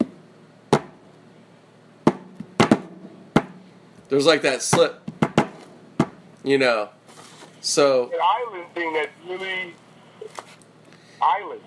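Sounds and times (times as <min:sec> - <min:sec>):
percussive tapping of an Afro-Cuban groove rhythm: 0:02.0 - 0:03.6, 0:04.7 - 0:06.2
speech: 0:04.1 - 0:05.1, 0:06.4 - 0:07.0, 0:07.6 - 0:09.8, 0:11.2 - 0:11.6.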